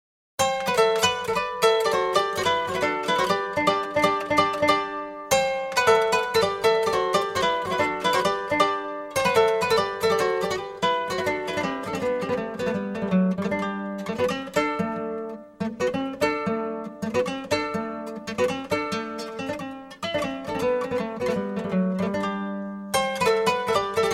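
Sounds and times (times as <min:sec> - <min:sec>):
jali playing kora in Senegal: 0:00.4 - 0:24.1.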